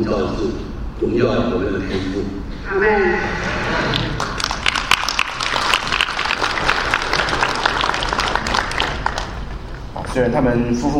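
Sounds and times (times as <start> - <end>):
speech: 0.0 - 4.2, 10.1 - 10.9
audience applause: 3.5 - 9.9.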